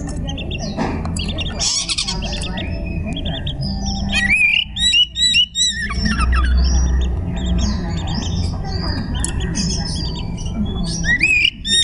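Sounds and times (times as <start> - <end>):
Oriental magpie-robin song: 0.0 - 11.8.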